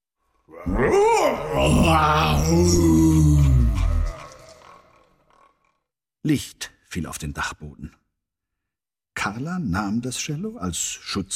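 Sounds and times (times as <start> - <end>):
speech: 0.5 - 3.5, 6.2 - 8.0, 9.2 - 11.3
enormously loud roar: 0.5 - 4.8.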